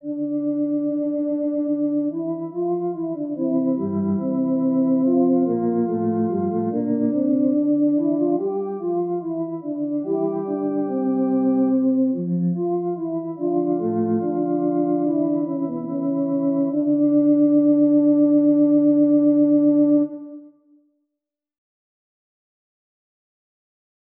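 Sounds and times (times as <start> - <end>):
two-voice counterpoint exercises: 0.0 - 20.6.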